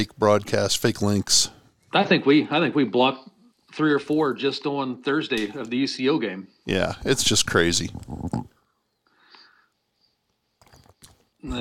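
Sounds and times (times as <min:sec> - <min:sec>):
speech: 0:00.0 - 0:08.4
person gulping water: 0:07.8 - 0:08.6, 0:10.6 - 0:11.5.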